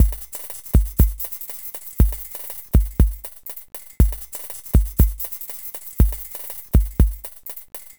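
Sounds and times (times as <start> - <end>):
kick drum: 0.0 - 1.4, 2.0 - 3.4, 4.0 - 5.4, 6.0 - 7.9
electronic beat: 0.0 - 7.9
hi-hats: 0.0 - 7.9.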